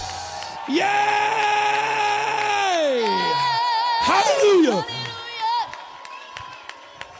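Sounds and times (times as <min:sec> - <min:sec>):
congregation shouting and cheering for victory during a church service: 0:00.4 - 0:05.5
speech: 0:00.7 - 0:01.4
sharp claps: 0:01.3 - 0:03.6, 0:04.6 - 0:07.1.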